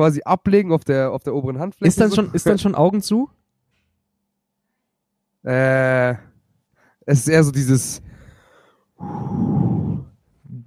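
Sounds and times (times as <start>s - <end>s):
speech: 0.0s - 3.4s, 5.4s - 6.3s, 7.1s - 8.1s, 9.0s - 9.6s
heavy breathing: 8.0s - 10.6s.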